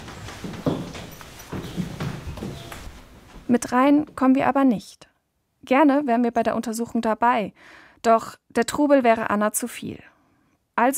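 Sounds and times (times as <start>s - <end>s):
footsteps walking upstairs on a hard surface: 0.0s - 4.3s
speech: 3.5s - 10.1s, 10.8s - 10.9s.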